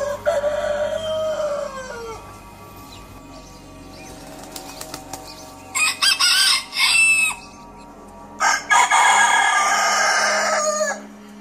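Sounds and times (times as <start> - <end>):
rooster crowing: 0.0 - 2.4, 5.7 - 7.6, 8.4 - 11.1
rooster wings flapping: 4.1 - 5.6.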